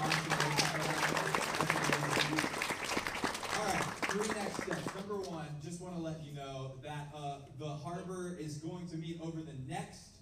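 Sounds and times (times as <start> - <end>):
audience clapping: 0.0 - 5.4
speech: 5.8 - 10.1.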